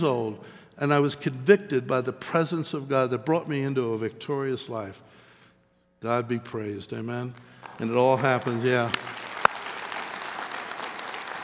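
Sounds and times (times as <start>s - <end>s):
speech: 0.0s - 5.2s, 6.0s - 9.2s
church congregation applause: 7.4s - 11.4s
sharp clap: 7.4s - 11.4s.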